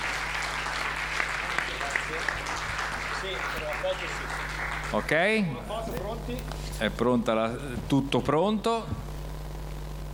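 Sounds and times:
audience applause: 0:00.0 - 0:05.6
speech: 0:03.2 - 0:09.1.

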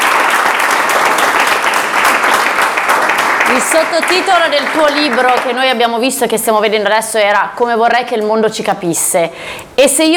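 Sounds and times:
audience applause for a book's author: 0:00.0 - 0:05.5
speech: 0:03.5 - 0:10.1.

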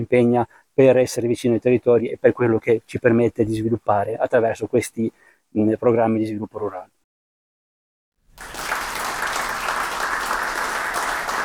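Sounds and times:
speech: 0:00.0 - 0:07.0
audience applause: 0:08.3 - 0:11.4.

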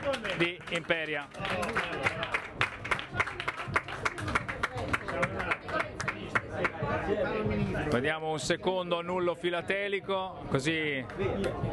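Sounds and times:
crowd applauding: 0:00.0 - 0:06.8
murmur of voices: 0:00.0 - 0:11.7
speech: 0:00.2 - 0:02.6, 0:07.1 - 0:11.7.

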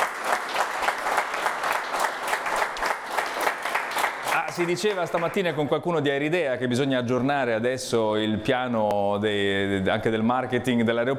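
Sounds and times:
audience applause: 0:00.0 - 0:05.7
speech: 0:04.6 - 0:11.1.

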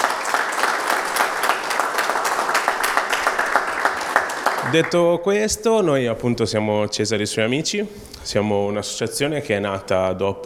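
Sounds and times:
crowd applause: 0:00.0 - 0:05.0
speech: 0:04.7 - 0:10.4.

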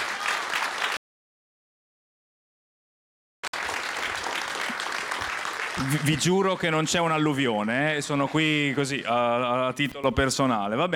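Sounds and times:
audience applause: 0:00.0 - 0:01.0, 0:03.5 - 0:09.6
speech: 0:05.8 - 0:10.9.

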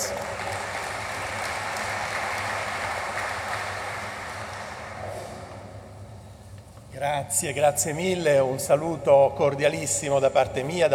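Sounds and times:
large audience applause: 0:00.0 - 0:05.1
speech: 0:07.0 - 0:10.9.

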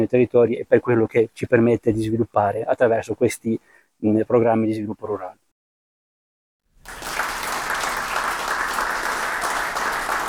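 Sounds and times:
speech: 0:00.0 - 0:05.4
audience applause: 0:06.8 - 0:10.2.

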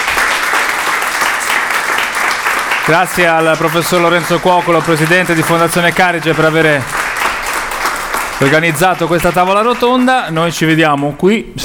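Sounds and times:
audience applause at the close of a round-table event: 0:00.0 - 0:11.2
speech: 0:02.9 - 0:07.0, 0:08.4 - 0:11.6.

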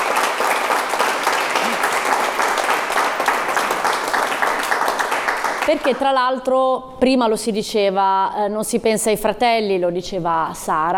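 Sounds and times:
audience applause: 0:00.0 - 0:06.0
speech: 0:05.7 - 0:10.9.

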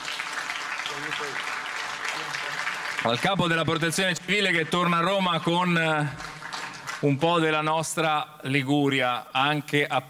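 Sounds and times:
audience applause: 0:00.0 - 0:07.7
speech: 0:00.9 - 0:01.6, 0:02.2 - 0:06.3, 0:07.0 - 0:10.0.

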